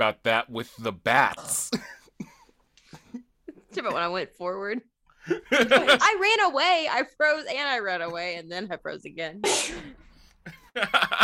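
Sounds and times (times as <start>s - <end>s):
speech: 0.0s - 1.9s, 3.8s - 11.2s
laughter: 5.2s - 6.1s, 10.4s - 11.2s
sneeze: 9.4s - 10.0s.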